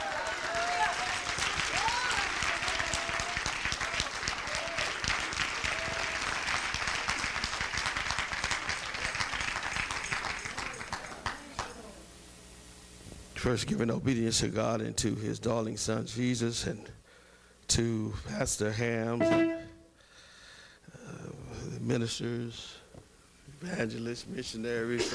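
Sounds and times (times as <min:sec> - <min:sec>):
audience clapping hands: 0:00.0 - 0:11.8
speech: 0:13.4 - 0:17.0, 0:17.7 - 0:19.6, 0:21.9 - 0:22.8, 0:23.6 - 0:25.1.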